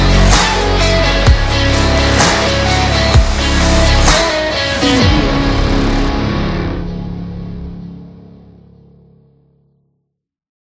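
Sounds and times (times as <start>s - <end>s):
epic rock music: 0.0s - 9.4s.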